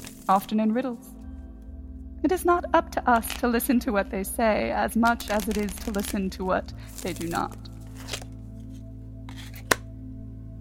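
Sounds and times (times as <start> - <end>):
tarot cards being shuffled: 0.0 - 0.5, 5.1 - 6.2, 6.8 - 9.9
speech: 0.3 - 1.1, 2.2 - 7.7
tarot card set down with a snap: 7.0 - 8.3, 9.3 - 9.9.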